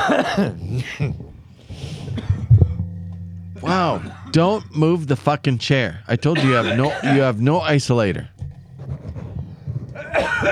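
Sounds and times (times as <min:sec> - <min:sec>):
cough: 0:00.0 - 0:01.3, 0:02.1 - 0:02.8, 0:06.4 - 0:07.3, 0:10.0 - 0:10.5
speech: 0:00.1 - 0:01.3, 0:03.6 - 0:08.3
low rumbling noise: 0:00.8 - 0:10.5
laughter: 0:06.3 - 0:07.6, 0:10.0 - 0:10.5.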